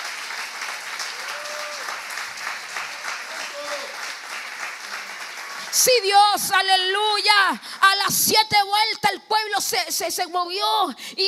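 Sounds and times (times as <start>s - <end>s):
audience applauding: 0.0s - 6.1s
speech: 5.8s - 11.2s.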